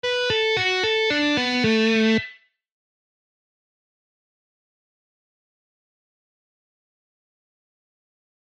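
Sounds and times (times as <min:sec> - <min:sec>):
guitar scale exercises: 0:00.0 - 0:02.5.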